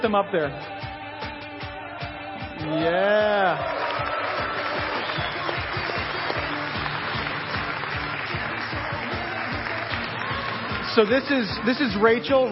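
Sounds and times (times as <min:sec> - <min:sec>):
speech: 0:00.0 - 0:00.8, 0:02.6 - 0:03.8, 0:11.0 - 0:12.5
audience applause: 0:02.7 - 0:12.3.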